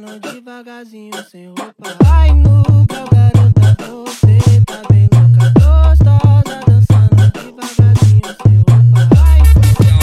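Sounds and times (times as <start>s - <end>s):
funk bass: 2.0s - 10.0s.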